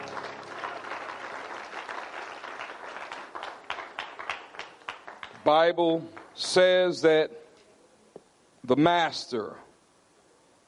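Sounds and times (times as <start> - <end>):
audience clapping hands: 0.0 - 6.6
speech: 5.5 - 7.4, 8.7 - 9.6.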